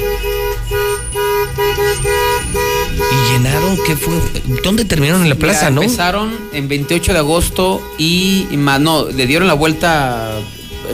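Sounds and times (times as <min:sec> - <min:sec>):
crowd noise: 0:00.0 - 0:07.6
car horns honking at a protest: 0:00.0 - 0:10.9
traffic rumble: 0:00.0 - 0:10.9
speech: 0:03.4 - 0:10.9.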